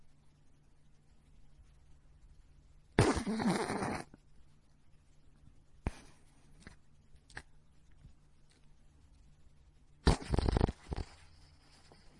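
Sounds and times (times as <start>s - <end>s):
small dog snoring: 3.0s - 4.2s, 10.0s - 11.5s.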